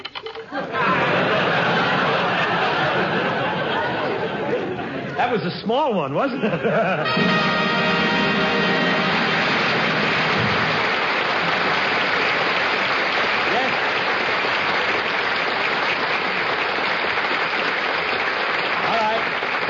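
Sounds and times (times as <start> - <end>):
laughter: 0.5 - 5.4, 6.2 - 7.6
studio audience applause: 0.8 - 4.9, 7.1 - 19.6
speech: 5.6 - 7.6.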